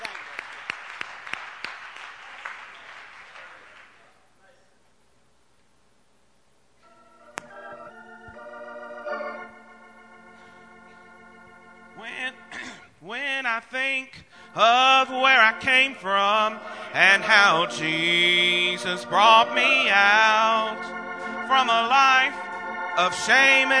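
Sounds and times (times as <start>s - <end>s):
audience applause: 0.0s - 4.1s
steady musical tones: 6.8s - 23.7s
speech: 13.6s - 20.9s, 21.5s - 22.4s, 23.0s - 23.7s.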